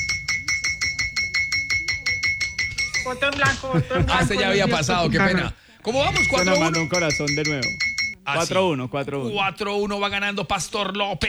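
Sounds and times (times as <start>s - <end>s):
bell being struck: 0.0s - 3.6s, 6.0s - 8.2s
laughter: 1.8s - 7.7s
speech: 3.0s - 11.2s.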